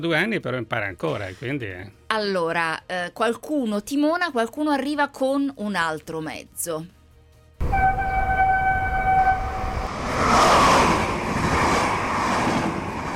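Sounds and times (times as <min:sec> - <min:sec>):
speech: 0:00.0 - 0:07.0
train horn: 0:07.6 - 0:09.9
train passing: 0:07.6 - 0:13.1.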